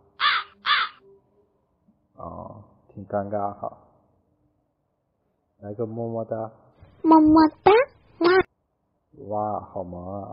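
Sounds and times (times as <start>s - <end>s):
crow cawing: 0.2s - 1.0s
speech: 2.2s - 3.8s, 5.6s - 7.7s, 9.3s - 10.3s.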